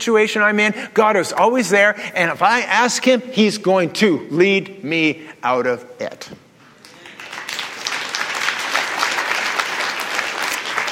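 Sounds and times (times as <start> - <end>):
speech: 0.0 - 6.4
audience golf clap: 6.8 - 10.9.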